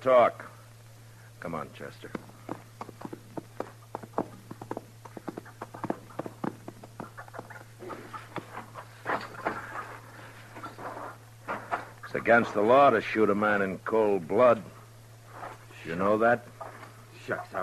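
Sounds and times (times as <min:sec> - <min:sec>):
speech: 0:00.0 - 0:00.5, 0:01.4 - 0:02.3, 0:12.2 - 0:14.7, 0:15.9 - 0:16.5, 0:17.3 - 0:17.6
horse hooves clip-clopping on hard ground: 0:02.0 - 0:09.8.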